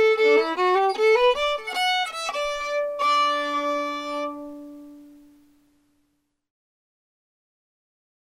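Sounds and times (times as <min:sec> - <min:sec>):
fiddle: 0:00.0 - 0:05.4.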